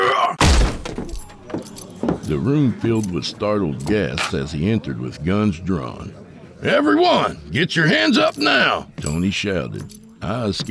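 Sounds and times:
short rattle: 0.4 - 2.0
splintering crack: 0.4 - 2.2
door kicked open: 0.4 - 2.4
speech: 2.3 - 10.7.

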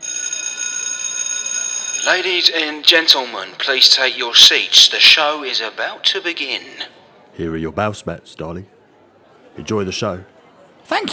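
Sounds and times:
bell ringing through a theatre foyer: 0.0 - 2.3
speech: 2.0 - 8.8, 9.6 - 10.3, 10.9 - 11.1.

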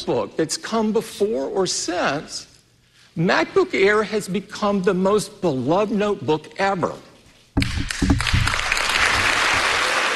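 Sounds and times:
speech: 0.0 - 2.5, 3.2 - 7.7
MacBook Air team applauding: 7.7 - 10.1.

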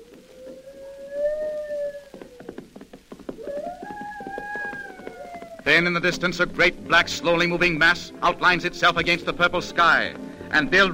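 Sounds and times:
wolf or coyote wailing: 0.0 - 2.5, 3.4 - 5.7
speech: 5.7 - 10.9.

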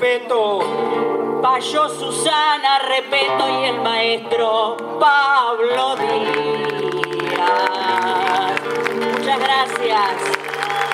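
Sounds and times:
speech: 0.0 - 10.5
audience applause: 6.1 - 10.9.

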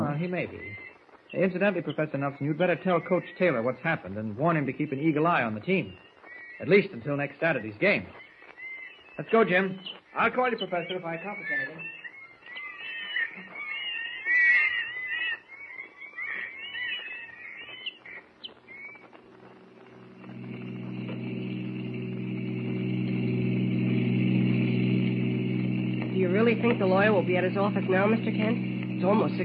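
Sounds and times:
high busy chirping: 0.0 - 29.4
speech: 0.2 - 8.2, 9.2 - 12.0, 26.6 - 29.4
car engine starting and running: 19.8 - 29.4.

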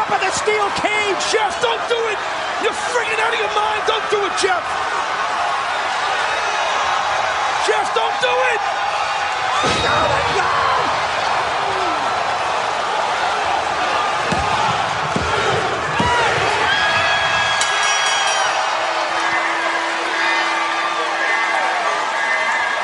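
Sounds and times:
packed arena crowd cheering wildly: 0.0 - 22.8
speech: 0.4 - 5.2, 9.6 - 11.0
shrill whistles: 17.5 - 22.8.

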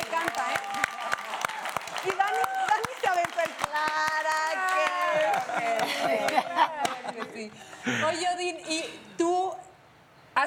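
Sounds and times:
audience clapping: 0.0 - 7.2
laughter: 5.0 - 8.1
speech: 5.6 - 9.4.

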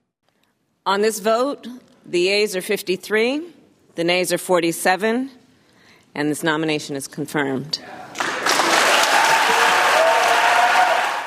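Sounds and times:
speech: 0.8 - 5.4, 6.1 - 8.0
Senate Democrats applauding after a confirmation vote: 8.1 - 11.2
Senate Democrats cheering: 8.1 - 11.2.

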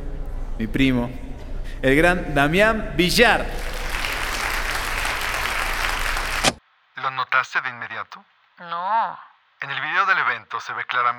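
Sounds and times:
speech: 0.6 - 3.7, 7.4 - 11.1
audience applause: 3.4 - 6.6.

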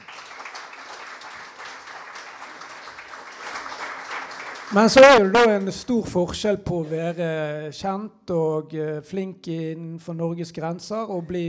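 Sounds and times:
audience applause: 0.0 - 5.7
speech: 4.7 - 11.4.

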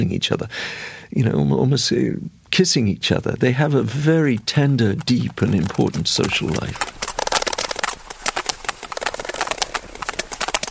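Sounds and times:
speech: 0.0 - 7.0
sperm whales clicking: 3.2 - 10.6.

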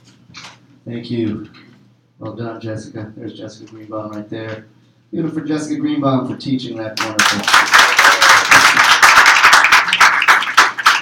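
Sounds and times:
speech: 0.9 - 1.6, 2.2 - 7.8
audience clapping: 7.0 - 10.9.

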